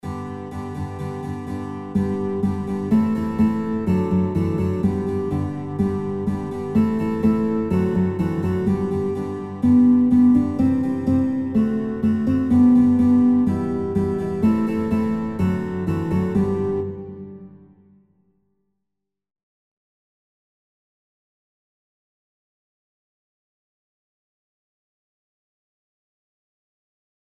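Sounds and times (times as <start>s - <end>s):
guitar: 0.0s - 18.2s.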